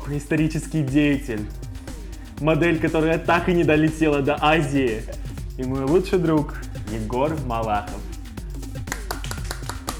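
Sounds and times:
speech: 0.1 - 1.6, 2.4 - 8.1
people clapping: 8.8 - 9.9.

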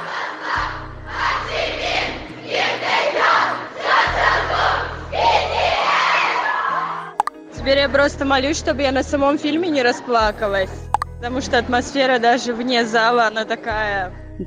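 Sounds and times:
fans shouting a fan chant: 0.0 - 6.9
speech: 7.7 - 14.4.

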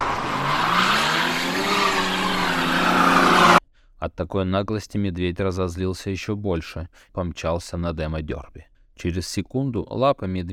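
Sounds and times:
car rear wheels spinning in snow: 0.0 - 3.6
speech: 4.1 - 10.5.

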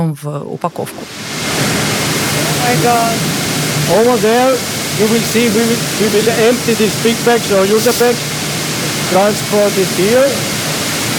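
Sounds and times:
speech: 0.0 - 1.6, 2.6 - 8.3, 9.1 - 10.5
coffee sieve and dust extraction machinery running: 1.6 - 10.4.

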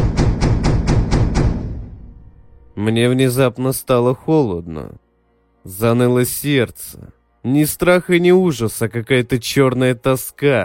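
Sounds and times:
heavy dull knocks on a door: 0.0 - 2.2
speech: 2.8 - 5.0, 5.6 - 10.6.

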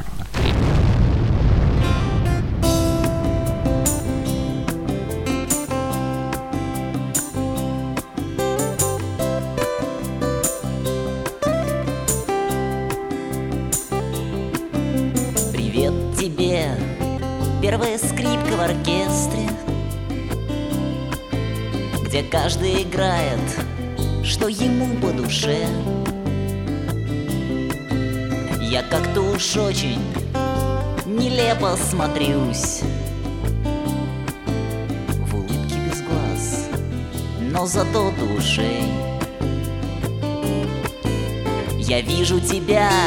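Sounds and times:
bass: 0.0 - 43.0
acoustic rock band strummed guitar chords: 0.4 - 43.0
drum beat: 2.8 - 7.4
speech: 22.3 - 23.7, 24.3 - 26.0, 28.7 - 30.2, 31.2 - 33.0, 37.6 - 39.1, 41.9 - 43.0.

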